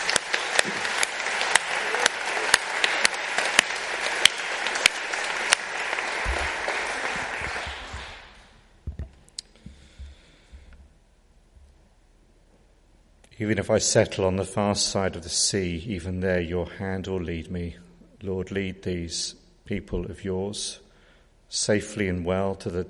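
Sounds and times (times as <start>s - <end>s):
room full of people clapping: 0.0s - 8.6s
speech: 13.4s - 20.8s, 21.5s - 22.8s.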